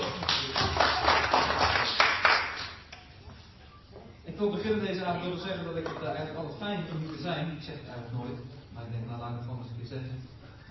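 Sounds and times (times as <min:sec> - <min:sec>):
audience applause: 0:00.0 - 0:02.8
speech: 0:04.4 - 0:10.4.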